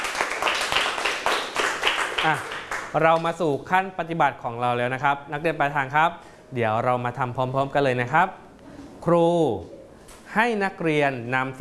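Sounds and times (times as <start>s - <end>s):
students clapping for themselves during a classroom lesson: 0.0s - 3.2s
speech: 2.2s - 8.4s, 9.0s - 11.5s.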